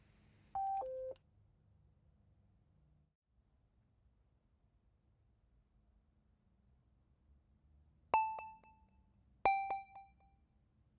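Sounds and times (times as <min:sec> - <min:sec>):
telephone keypad tones dialing to call back: 0:00.6 - 0:01.2, 0:09.5 - 0:10.1.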